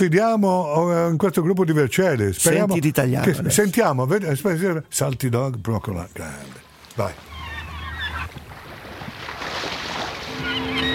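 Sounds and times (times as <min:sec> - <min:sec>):
speech: 0:00.0 - 0:07.3
seagulls crying: 0:07.0 - 0:08.6, 0:10.0 - 0:10.9.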